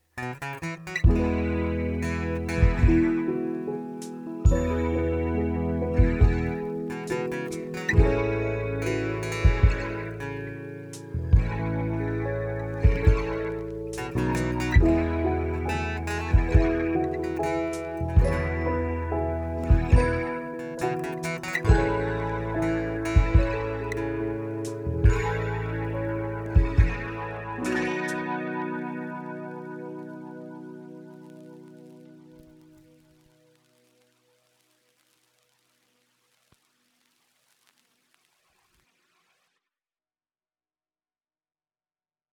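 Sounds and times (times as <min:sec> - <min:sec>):
soulful soothing music: 0:00.9 - 0:34.0.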